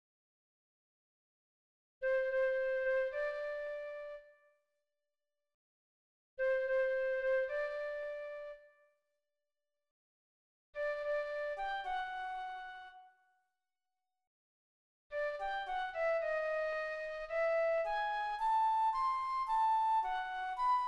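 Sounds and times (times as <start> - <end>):
flute: 2.0 - 4.6, 6.4 - 9.0, 10.8 - 13.3, 15.1 - 20.8.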